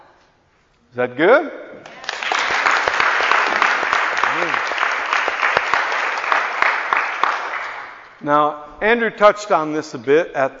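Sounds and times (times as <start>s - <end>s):
speech: 0.9s - 1.8s, 8.2s - 10.5s
audience clapping: 1.8s - 8.2s.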